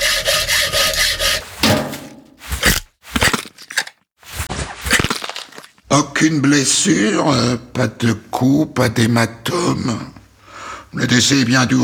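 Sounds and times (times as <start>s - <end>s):
saw cutting through bone of a ribcage: 0.0s - 5.7s
speech: 6.2s - 10.2s, 10.9s - 11.8s.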